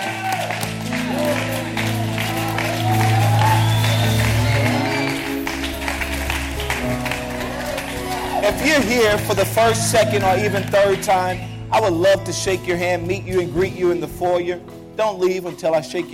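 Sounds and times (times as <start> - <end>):
audience clapping hands: 0.0 - 12.6
speech: 8.6 - 16.1.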